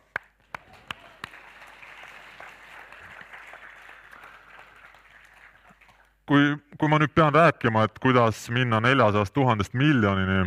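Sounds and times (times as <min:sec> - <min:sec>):
audience applause: 0:00.0 - 0:06.2
speech: 0:06.3 - 0:10.4.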